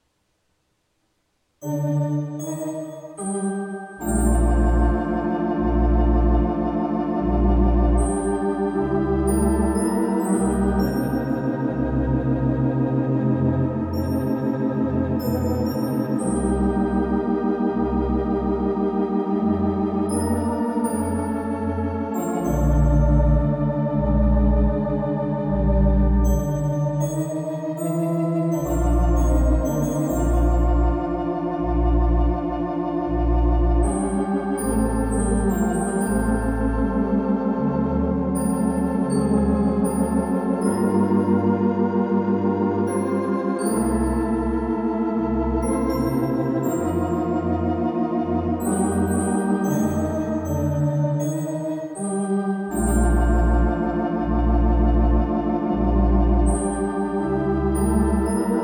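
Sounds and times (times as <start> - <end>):
Wurlitzer organ: 3.1 - 58.6.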